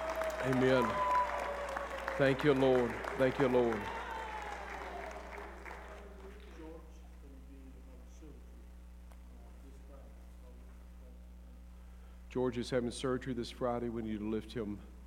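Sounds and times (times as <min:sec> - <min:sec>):
audience hand clapping: 0:00.0 - 0:06.8
speech: 0:00.4 - 0:01.1, 0:02.2 - 0:04.0, 0:12.4 - 0:15.0.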